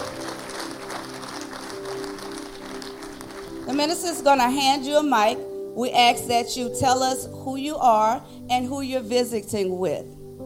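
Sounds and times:
audience clapping: 0:00.0 - 0:04.3
speech: 0:03.7 - 0:10.2.

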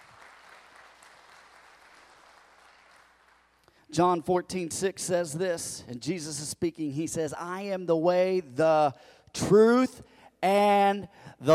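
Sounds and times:
crowd clapping: 0:00.0 - 0:03.7
speech: 0:03.9 - 0:11.5.

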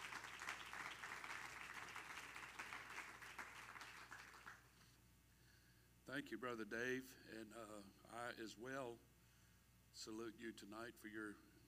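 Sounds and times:
audience clapping hands: 0:00.0 - 0:04.7
speech: 0:06.1 - 0:09.1, 0:10.0 - 0:11.5.

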